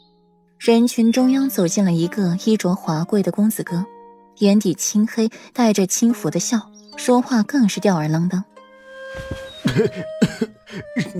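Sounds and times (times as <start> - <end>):
speech: 0.7 - 8.5, 9.1 - 11.1
man coughing after being kicked: 9.6 - 11.1.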